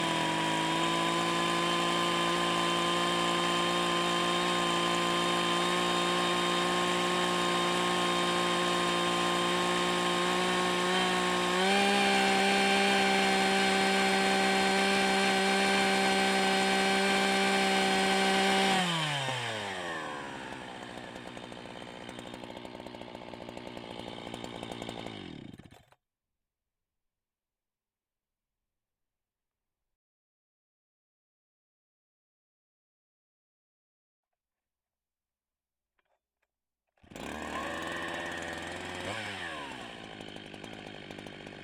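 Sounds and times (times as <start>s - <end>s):
large chainsaw starting and running at steady RPM, exhaust: 0.0s - 26.0s, 37.0s - 41.6s.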